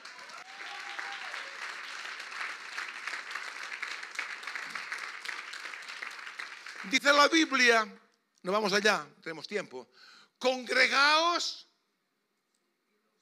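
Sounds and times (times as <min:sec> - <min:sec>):
audience applause: 0:00.0 - 0:07.7
speech: 0:06.8 - 0:11.7.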